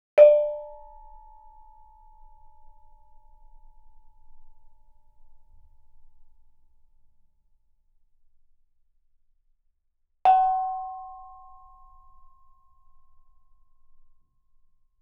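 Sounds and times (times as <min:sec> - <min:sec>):
gamelan: 0:00.2 - 0:00.8.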